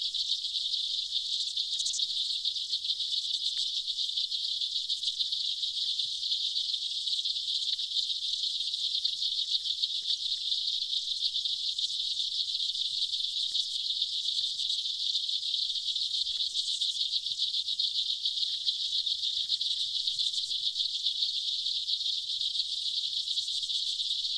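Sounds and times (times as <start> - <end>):
aquatic insects: 0.0 - 24.3.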